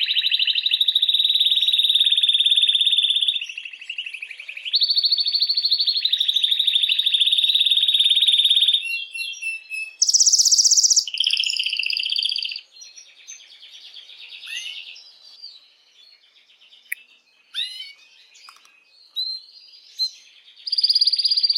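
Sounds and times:
canary singing: 0.0s - 21.5s.

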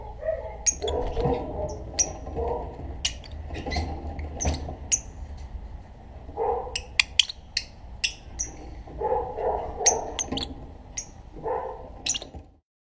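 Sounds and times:
Black-cheeked lovebird making harsh shrill squawks and chirps: 0.0s - 5.2s, 6.7s - 8.8s, 9.4s - 12.4s.

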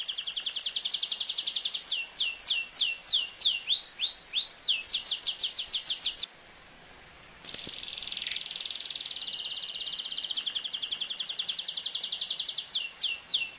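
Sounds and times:
Atlantic canary singing: 0.0s - 6.3s, 7.5s - 13.5s.

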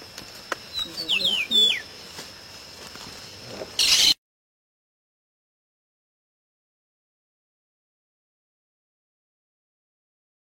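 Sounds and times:
constant high whine: 0.0s - 4.2s
Pedro-ceroulo singing: 0.6s - 2.1s, 3.3s - 4.2s.

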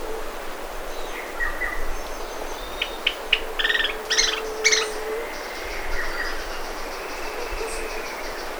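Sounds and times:
ferreirinho de testa parda singing: 0.9s - 8.5s.

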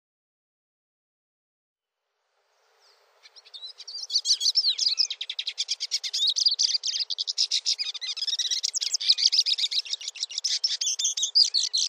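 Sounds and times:
finch singing: 2.5s - 11.8s.

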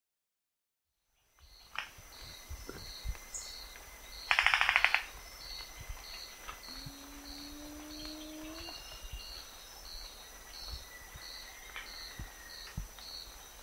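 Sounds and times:
insects calling: 1.2s - 13.6s
high hum: 6.3s - 9.5s
rufous-vented ground cuckoo clacking: 6.6s - 9.0s.

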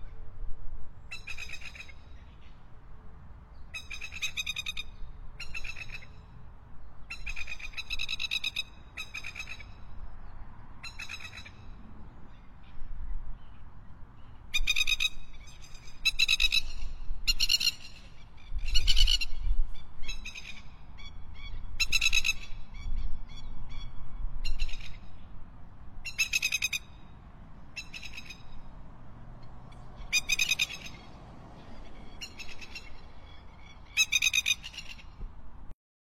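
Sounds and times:
white-faced lapwing calling: 1.1s - 2.6s, 3.7s - 6.2s, 7.0s - 9.8s, 10.8s - 11.6s, 14.2s - 25.2s, 26.0s - 27.1s, 27.7s - 28.7s, 29.7s - 35.2s.

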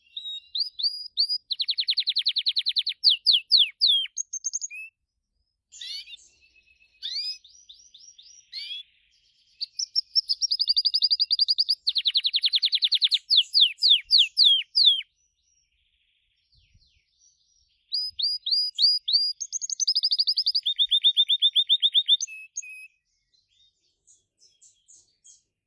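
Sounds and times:
Gloster canary singing: 0.0s - 5.0s, 5.7s - 16.1s, 16.9s - 25.5s.

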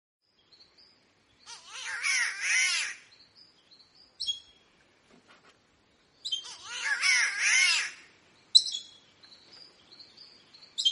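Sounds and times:
green catbird cat-like wail: 1.5s - 3.0s, 6.5s - 8.0s.

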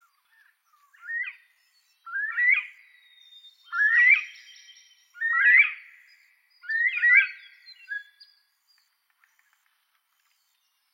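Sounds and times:
northern bobwhite chirping calls: 0.1s - 8.4s.

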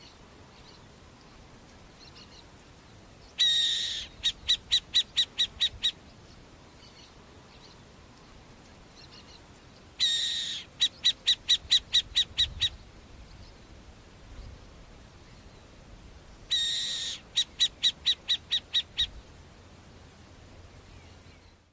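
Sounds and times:
masked owl calling: 3.4s - 6.0s, 10.0s - 12.8s, 16.5s - 19.2s.

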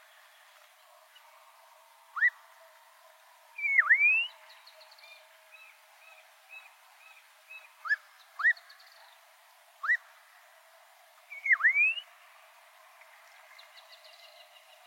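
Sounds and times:
black-crowned monjita dipping-then-rising whistle: 2.2s - 2.4s, 3.6s - 4.4s, 9.8s - 10.0s, 11.3s - 12.1s.

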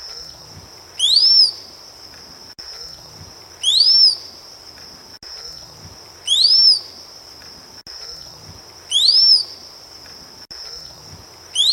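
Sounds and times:
rose-collared piha rising-then-falling whistle: 3.6s - 4.2s, 6.3s - 6.8s, 8.9s - 9.5s, 11.6s - 11.7s.

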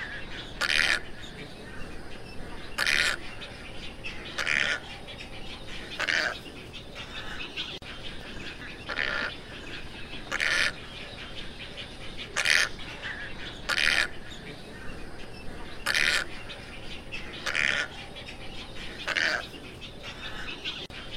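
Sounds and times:
tricolored heron squawks: 0.0s - 1.9s, 2.5s - 6.4s, 7.0s - 21.1s.

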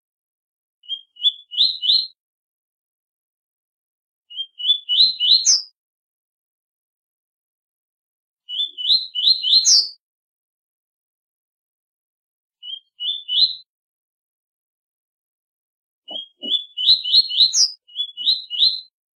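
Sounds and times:
double-collared seedeater whistled song: 0.8s - 2.2s, 4.3s - 5.8s, 8.4s - 10.0s, 12.6s - 13.7s, 16.1s - 19.0s.

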